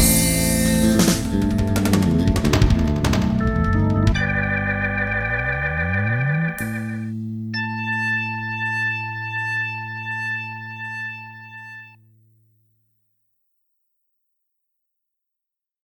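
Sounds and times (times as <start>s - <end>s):
keyboard bass: 0.0s - 12.0s.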